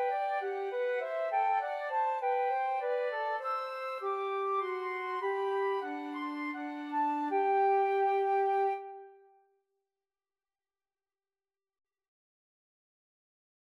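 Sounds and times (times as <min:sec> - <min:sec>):
flute trio playing: 0:00.0 - 0:09.3.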